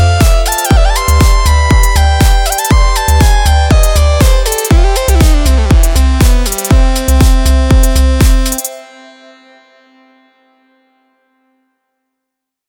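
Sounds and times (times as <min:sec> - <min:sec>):
electronic dance music: 0:00.0 - 0:08.8.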